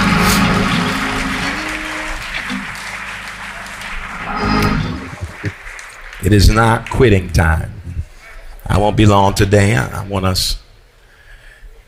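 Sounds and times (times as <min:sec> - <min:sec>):
audience clapping hands in praise: 0:00.0 - 0:07.6
speech: 0:06.3 - 0:07.8, 0:08.7 - 0:10.6.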